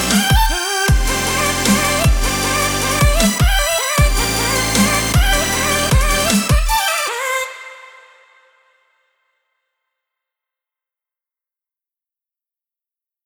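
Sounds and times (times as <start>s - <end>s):
future bass music arrangement: 0.0s - 7.1s.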